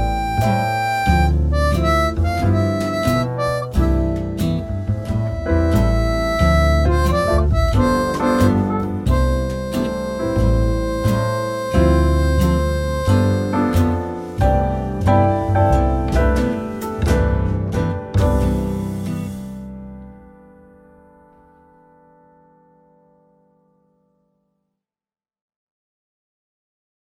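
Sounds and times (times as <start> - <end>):
harp: 0.0 - 19.8.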